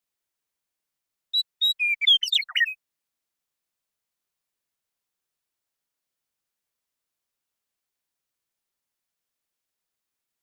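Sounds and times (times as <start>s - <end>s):
western meadowlark whistling song: 1.4s - 2.8s.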